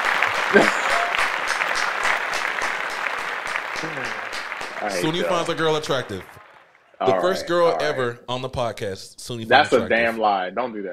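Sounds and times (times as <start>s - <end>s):
applause: 0.0s - 7.0s
speech: 0.5s - 0.8s, 4.8s - 6.4s, 7.0s - 10.9s.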